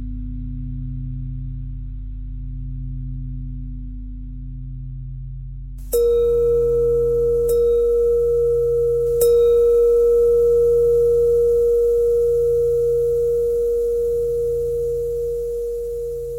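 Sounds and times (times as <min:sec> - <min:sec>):
bell: 0:05.9 - 0:16.3.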